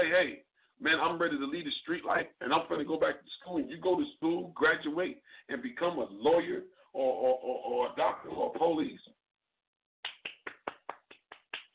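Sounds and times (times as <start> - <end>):
speech: 0.0 - 9.2
crisp hand claps from one person: 10.0 - 11.7.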